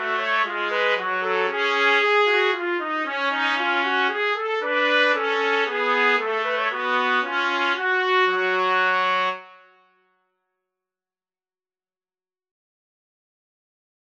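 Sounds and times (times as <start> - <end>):
minuet in G-sharp minor: 0.0 - 9.7.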